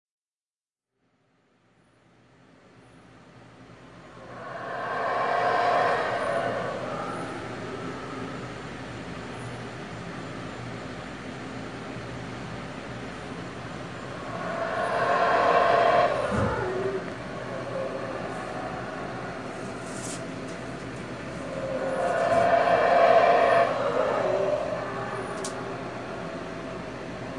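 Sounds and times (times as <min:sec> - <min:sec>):
howler monkeys roaring: 0:04.2 - 0:08.4, 0:14.0 - 0:26.5.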